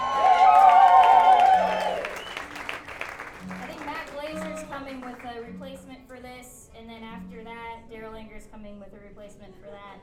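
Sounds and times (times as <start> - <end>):
audience applause: 0.0 - 5.4.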